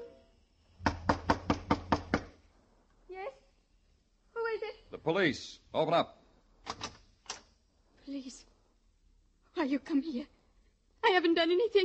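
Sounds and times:
firm knocks on a door: 0.8 - 2.4
speech: 5.0 - 6.8, 8.1 - 8.5, 9.6 - 10.4, 11.0 - 11.8.

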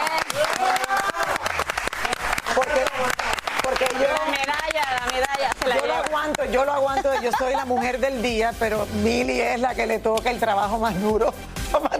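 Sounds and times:
voices cheering and calling out: 0.0 - 3.2
audience applause: 0.0 - 6.4
speech: 6.4 - 11.9
laughter: 6.5 - 8.4.

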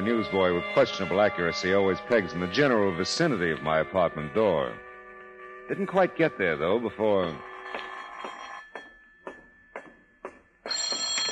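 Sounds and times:
speech: 0.0 - 4.8, 5.7 - 8.3
telephone ringing: 7.0 - 9.2, 10.6 - 11.3.

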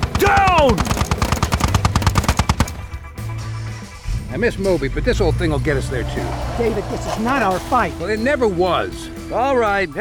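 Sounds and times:
chain gun firing: 0.0 - 3.0
speech: 0.6 - 0.9, 4.4 - 10.0.

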